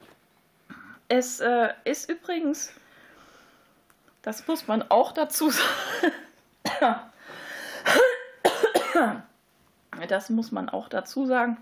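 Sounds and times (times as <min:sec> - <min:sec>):
speech: 0:01.1 - 0:02.8, 0:04.2 - 0:06.2, 0:06.8 - 0:07.1, 0:09.0 - 0:09.3, 0:10.0 - 0:11.6
person with a cold coughing: 0:05.6 - 0:07.0, 0:07.8 - 0:09.2.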